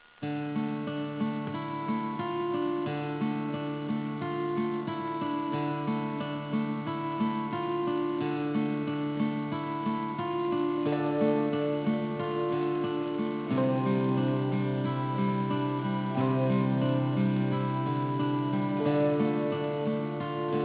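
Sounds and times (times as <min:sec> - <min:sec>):
background music: 0:00.6 - 0:20.6.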